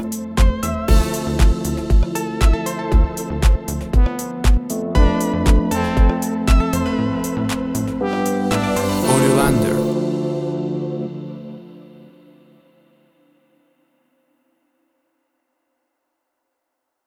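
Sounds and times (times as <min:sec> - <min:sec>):
tropical house groove: 0:00.0 - 0:10.0.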